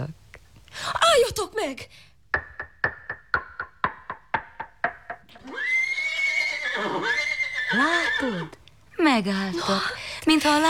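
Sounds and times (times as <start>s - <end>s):
speech: 0.8s - 2.4s, 7.0s - 10.6s
hooves clopping: 2.4s - 6.0s
dapple-grey horses neighing: 5.3s - 8.6s.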